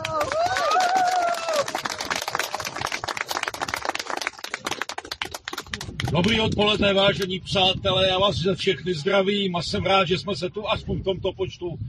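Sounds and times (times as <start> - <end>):
audience applause: 0.0 - 6.2
speech: 6.1 - 11.8.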